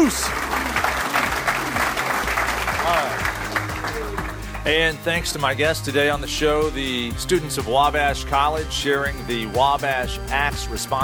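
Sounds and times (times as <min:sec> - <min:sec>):
audience applause: 0:00.0 - 0:04.8
speech: 0:04.6 - 0:11.0.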